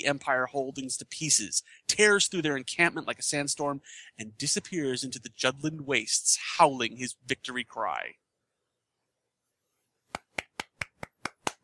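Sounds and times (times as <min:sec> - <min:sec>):
speech: 0:00.0 - 0:08.2
golf clap, soft slow clapping: 0:10.1 - 0:11.6.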